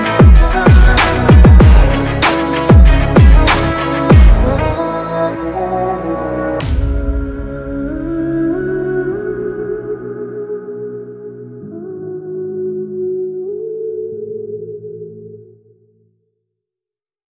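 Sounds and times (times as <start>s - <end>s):
hard inspiring motivational rap beat: 0.0s - 10.6s.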